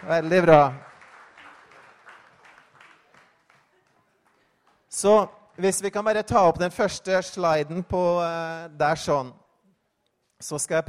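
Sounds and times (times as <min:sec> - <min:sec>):
speech: 0:00.0 - 0:00.9, 0:05.0 - 0:09.4, 0:10.4 - 0:10.8
audience applause: 0:00.0 - 0:04.9.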